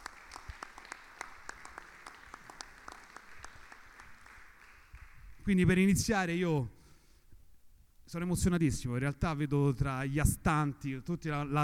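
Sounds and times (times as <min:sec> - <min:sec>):
audience applauding: 0:00.0 - 0:05.4
speech: 0:05.5 - 0:06.8, 0:08.1 - 0:11.6.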